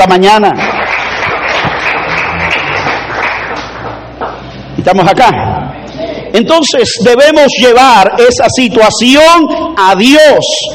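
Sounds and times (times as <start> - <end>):
speech: 0.0 - 0.7, 4.8 - 10.7
audience applause: 0.6 - 4.4.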